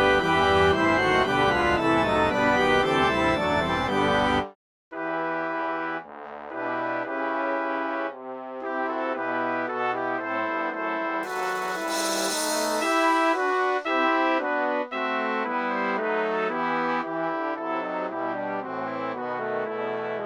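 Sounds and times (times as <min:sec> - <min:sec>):
triumphal march on organ and brass: 0:00.0 - 0:20.2.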